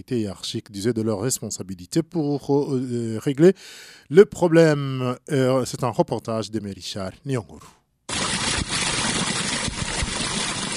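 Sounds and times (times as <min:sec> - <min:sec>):
speech: 0:00.0 - 0:07.8
wastewater overflowing from drains: 0:08.1 - 0:10.7.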